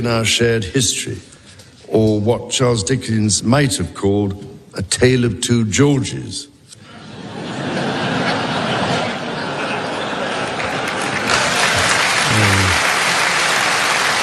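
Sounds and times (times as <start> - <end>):
speech: 0.0 - 6.5
crowd laughter: 6.8 - 14.2
crowd clapping: 9.8 - 14.2.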